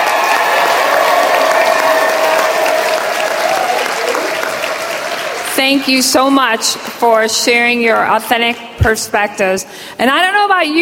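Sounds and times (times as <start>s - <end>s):
audience applause: 0.0s - 6.0s
speech: 5.6s - 10.8s.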